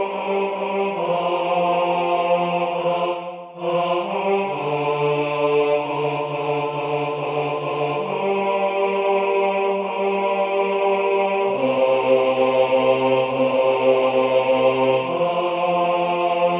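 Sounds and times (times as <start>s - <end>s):
bass part of a sung prayer: 0.0s - 16.5s.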